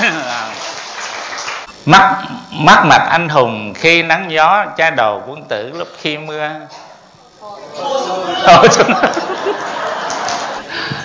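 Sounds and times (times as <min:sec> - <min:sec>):
laughter: 0:00.0 - 0:00.5, 0:07.7 - 0:11.0
audience applause: 0:00.0 - 0:01.7, 0:09.0 - 0:11.0
speech: 0:01.8 - 0:06.9, 0:07.5 - 0:10.2.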